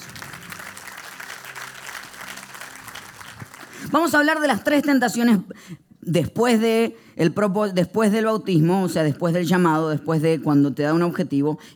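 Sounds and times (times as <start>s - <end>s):
audience applauding: 0.0s - 4.1s
speech: 3.9s - 11.7s.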